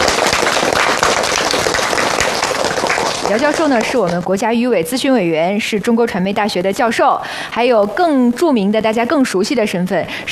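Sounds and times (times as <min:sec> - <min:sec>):
applause: 0:00.0 - 0:04.3
speech: 0:03.3 - 0:10.2.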